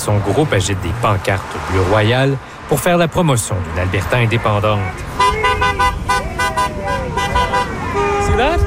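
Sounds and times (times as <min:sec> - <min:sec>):
speech: 0:00.0 - 0:05.4
street traffic: 0:00.0 - 0:08.6
car horn honking at busy intersection: 0:04.9 - 0:08.6.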